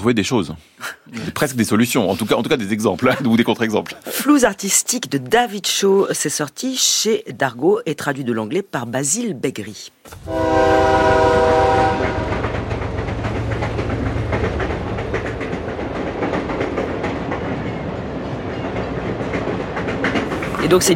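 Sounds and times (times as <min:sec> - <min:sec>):
speech: 0:00.0 - 0:12.2, 0:20.7 - 0:20.9
train horn blast: 0:10.2 - 0:12.7
train wheels clickety-clack over the rails: 0:12.0 - 0:20.9.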